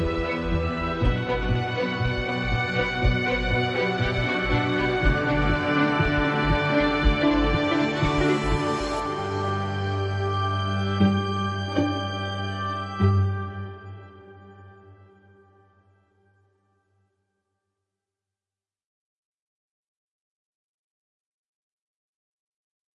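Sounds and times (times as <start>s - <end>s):
ambient sound: 0.0s - 15.8s.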